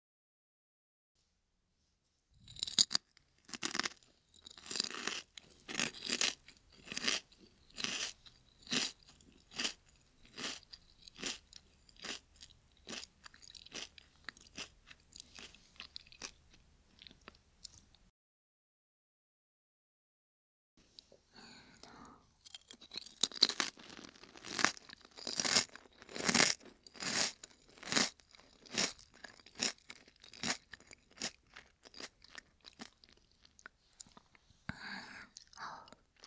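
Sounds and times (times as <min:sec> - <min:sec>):
lightly salted potato chips being eaten: 0:02.6 - 0:16.4, 0:22.4 - 0:33.6.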